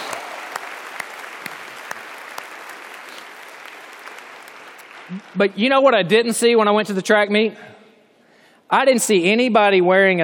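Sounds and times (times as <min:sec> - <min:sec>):
applause: 0:00.0 - 0:05.8
speech: 0:05.1 - 0:07.7, 0:08.7 - 0:10.2.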